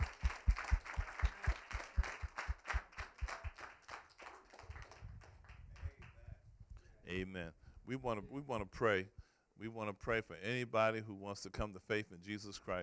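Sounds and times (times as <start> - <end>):
audience clapping hands: 0.0 - 6.2
speech: 7.1 - 12.8.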